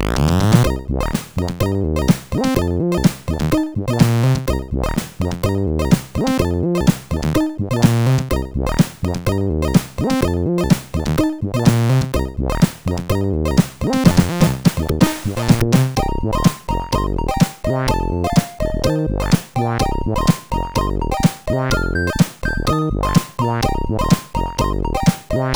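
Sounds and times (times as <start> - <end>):
funk music: 0.1 - 25.5.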